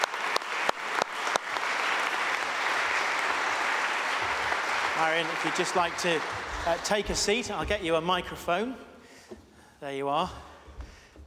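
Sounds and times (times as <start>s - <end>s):
crowd applause: 0.0s - 8.3s
speech: 5.0s - 8.9s, 9.8s - 10.5s.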